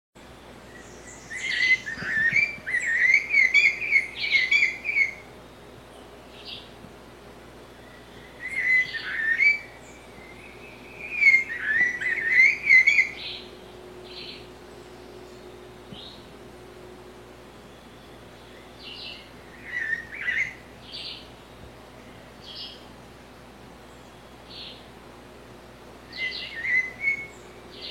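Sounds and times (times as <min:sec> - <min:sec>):
blue-bellied parrot song with soft notes and bright whistled notes: 0:01.3 - 0:05.2, 0:08.4 - 0:09.7, 0:11.0 - 0:13.3, 0:26.1 - 0:27.3.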